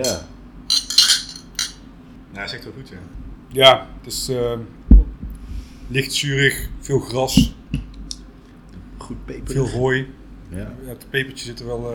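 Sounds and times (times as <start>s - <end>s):
speech: 0.0s - 0.3s, 2.4s - 4.8s, 5.9s - 7.6s, 9.1s - 11.9s
glasses clinking in a toast: 0.0s - 1.8s.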